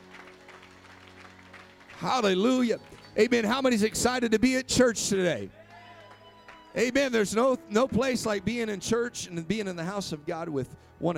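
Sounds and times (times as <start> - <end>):
audience clapping hands in praise: 0.0 - 3.9, 5.6 - 7.2
speech: 2.0 - 5.6, 6.8 - 11.1.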